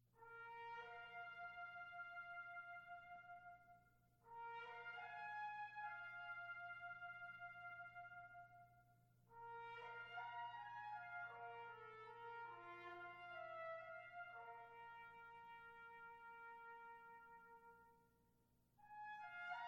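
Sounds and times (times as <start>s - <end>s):
brass ensemble: 0.2s - 3.6s, 4.2s - 8.6s, 9.3s - 18.2s, 18.8s - 19.6s
trumpet: 0.2s - 18.2s, 18.8s - 19.6s.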